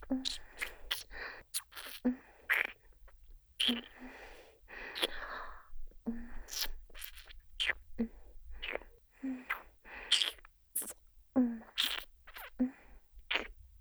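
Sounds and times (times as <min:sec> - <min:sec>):
kissing: 0:00.0 - 0:02.8, 0:03.6 - 0:04.1, 0:04.8 - 0:05.2, 0:06.1 - 0:11.0, 0:11.6 - 0:13.5.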